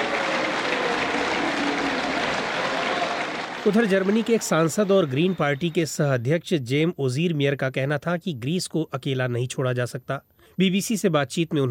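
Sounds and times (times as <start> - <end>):
people applauding: 0.0 - 6.2
speech: 3.6 - 11.6.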